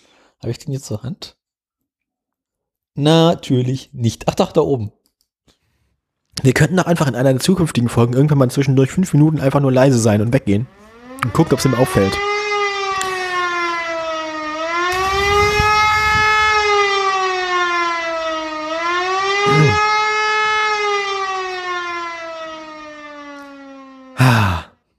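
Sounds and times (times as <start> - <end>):
speech: 0.4 - 1.4, 3.0 - 5.0, 6.4 - 12.3
air-raid siren wailing: 10.6 - 24.7.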